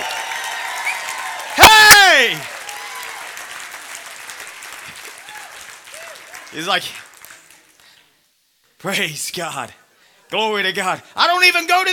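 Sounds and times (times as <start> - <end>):
church crowd applauding: 0.0 - 8.0
speech: 2.2 - 2.5, 6.5 - 7.1, 8.8 - 11.9.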